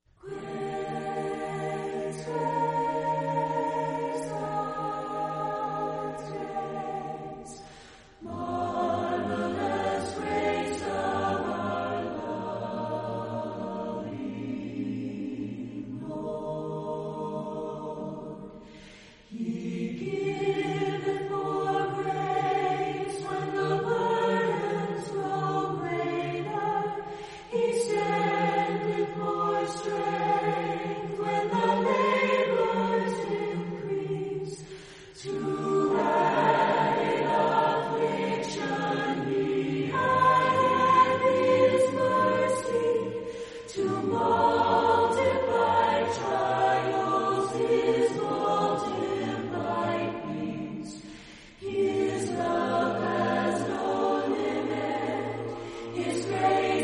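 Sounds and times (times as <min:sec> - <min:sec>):
a cappella chorale singing: 0:00.0 - 0:56.8.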